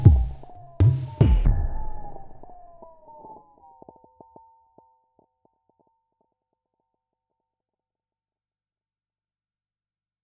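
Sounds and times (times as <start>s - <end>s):
Digitakt sampler sound: 0.0s - 2.9s.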